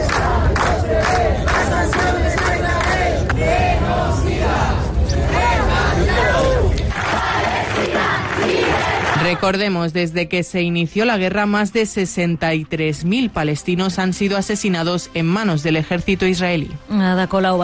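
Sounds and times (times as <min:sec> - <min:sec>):
large protest crowd shouting chants in unison: 0:00.0 - 0:09.5
speech: 0:09.3 - 0:17.6.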